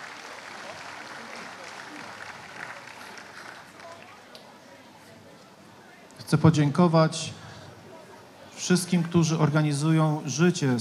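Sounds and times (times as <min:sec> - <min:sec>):
audience applause: 0:00.0 - 0:04.3
speech: 0:06.3 - 0:07.4, 0:08.7 - 0:10.7.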